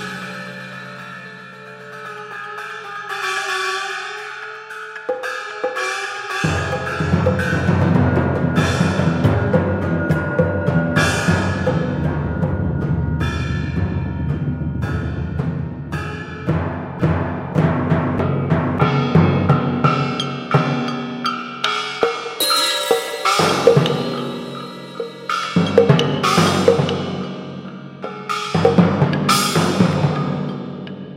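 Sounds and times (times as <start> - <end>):
percussion: 0.0 - 31.1
electronic sounds: 22.4 - 26.0.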